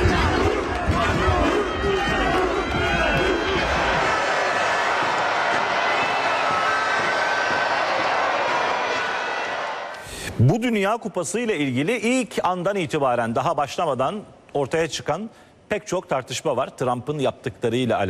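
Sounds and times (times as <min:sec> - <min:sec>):
crowd in Madrid cheering Spain's World Cup win: 0:00.0 - 0:10.1
speech: 0:10.6 - 0:18.0.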